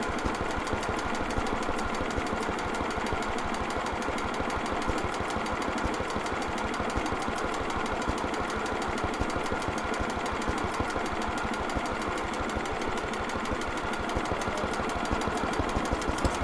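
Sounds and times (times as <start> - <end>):
1936 1.5hp engine operating: 0.0 - 16.4.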